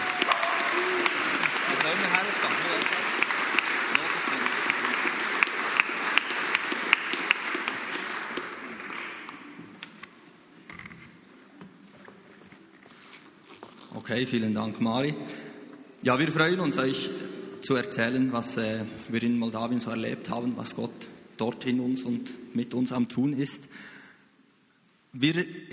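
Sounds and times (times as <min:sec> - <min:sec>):
warm audience applause: 0:00.0 - 0:09.9
speech: 0:14.1 - 0:23.9, 0:25.2 - 0:25.7.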